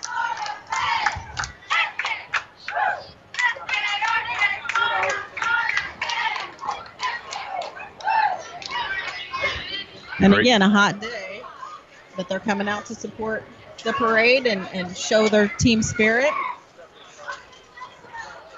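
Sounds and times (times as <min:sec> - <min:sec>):
sharp claps: 0:00.0 - 0:09.5
junior high cheerleaders chanting a cheer at parade: 0:00.0 - 0:18.5
speech: 0:10.2 - 0:11.1, 0:12.2 - 0:16.4.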